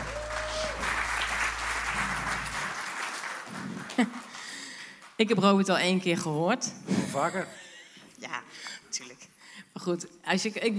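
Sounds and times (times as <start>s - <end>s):
low hum: 0.0s - 2.8s
audience applause: 0.0s - 5.2s
speech: 5.2s - 7.6s, 8.2s - 10.7s.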